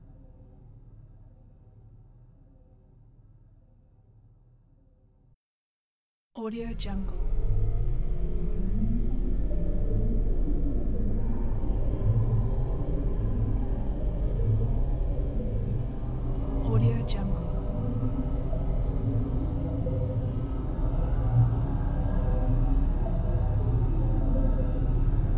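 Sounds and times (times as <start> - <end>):
deep suspenseful background ambiance: 6.6 - 25.3.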